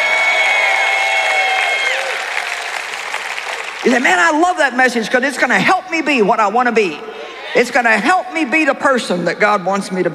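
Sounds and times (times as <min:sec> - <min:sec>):
crowd clapping and cheering: 0:00.0 - 0:04.7
speech: 0:03.8 - 0:10.1.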